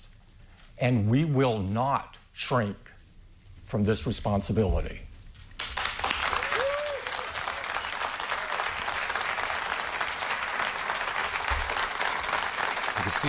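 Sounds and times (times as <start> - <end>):
speech: 0.8 - 2.9, 3.7 - 5.1
sustained audience applause: 5.6 - 13.2.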